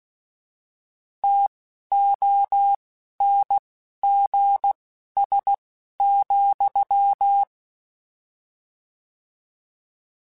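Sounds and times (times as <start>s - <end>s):
Morse code beeps: 1.2s - 7.5s.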